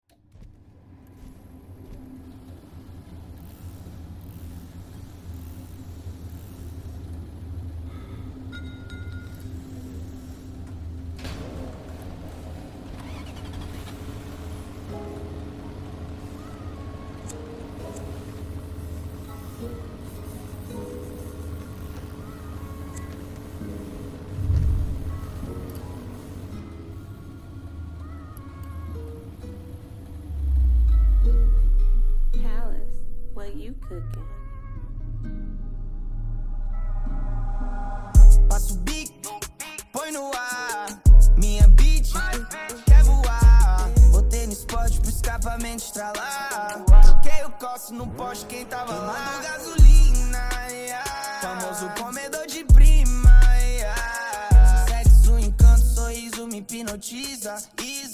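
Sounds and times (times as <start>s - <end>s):
deep bass: 24.4s - 25.2s, 30.3s - 39.0s, 41.1s - 45.8s, 49.8s - 50.6s, 52.7s - 56.2s.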